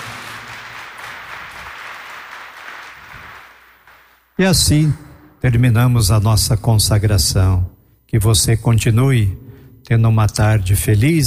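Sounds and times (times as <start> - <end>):
crowd applause: 0.0 - 4.3
speech: 4.4 - 11.2.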